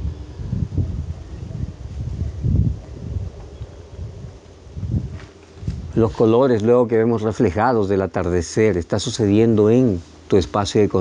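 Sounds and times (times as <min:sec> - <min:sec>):
wind blowing in low rumbling gusts: 0:00.0 - 0:10.9
soft rustle: 0:01.9 - 0:06.8
speech: 0:06.0 - 0:10.9.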